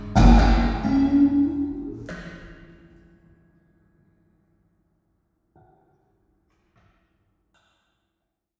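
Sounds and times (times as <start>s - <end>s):
electric guitar: 0.0s - 2.6s.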